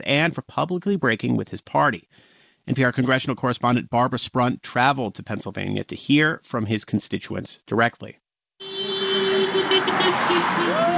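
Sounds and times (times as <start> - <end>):
speech: 0.0 - 8.2, 9.8 - 10.9
busy roadway traffic: 8.6 - 10.9
car horn honking along a main road: 8.6 - 10.9.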